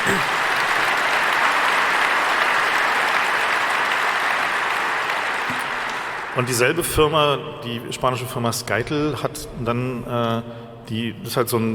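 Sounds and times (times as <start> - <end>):
audience applause: 0.0 - 7.0
speech: 6.4 - 11.7.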